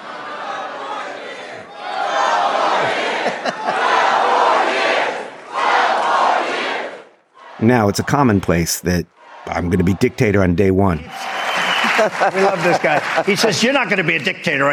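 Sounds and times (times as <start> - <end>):
large rally crowd shouting a chant: 0.0 - 8.5, 9.1 - 10.3
laughter: 2.6 - 4.5, 11.2 - 14.1
speech: 7.6 - 11.2, 12.0 - 14.7.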